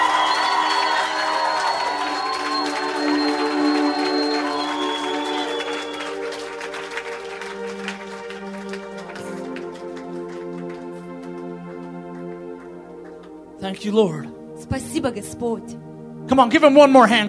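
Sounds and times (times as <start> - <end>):
scattered whoops: 0.0 - 10.5
crowd shouting and cheering praise: 0.0 - 10.6
speech: 13.7 - 17.2.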